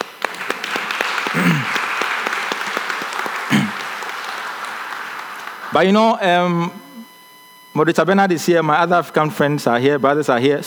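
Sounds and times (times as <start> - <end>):
crowd clapping: 0.0 - 6.7
low vocal sounds: 1.4 - 1.8, 3.5 - 3.8
speech: 5.8 - 6.8, 7.8 - 10.6.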